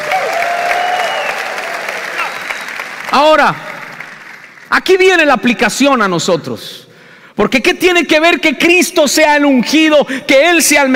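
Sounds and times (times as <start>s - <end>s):
audience applauding loudly: 0.0s - 5.0s
speech: 3.1s - 3.7s, 4.7s - 6.8s, 7.4s - 10.9s.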